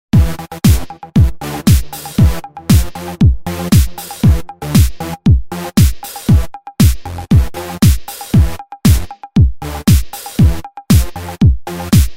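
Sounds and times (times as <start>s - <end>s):
dance music: 0.2s - 12.1s.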